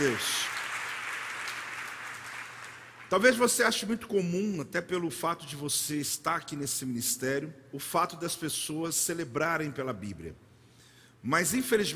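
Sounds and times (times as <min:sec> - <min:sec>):
speech: 0:00.0 - 0:00.4, 0:03.1 - 0:10.5, 0:11.2 - 0:11.9
audience applause: 0:00.0 - 0:03.1.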